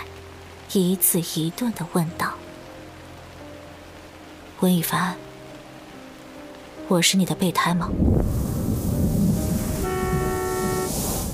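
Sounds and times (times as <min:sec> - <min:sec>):
speech: 0:00.7 - 0:02.5, 0:04.6 - 0:05.2, 0:06.9 - 0:08.4
low rumble of road traffic: 0:08.2 - 0:11.3
car horn honking: 0:09.8 - 0:11.0.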